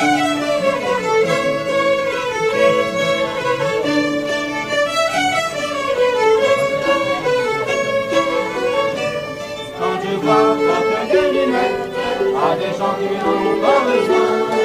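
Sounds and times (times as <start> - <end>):
harps playing a mazurka: 0.0 - 14.6.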